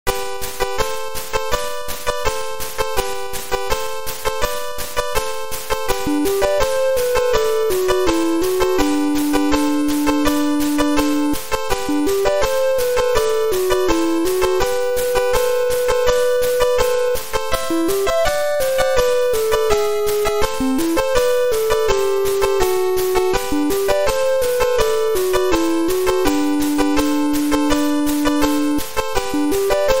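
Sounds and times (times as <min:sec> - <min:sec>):
theme music: 0:00.4 - 0:29.9.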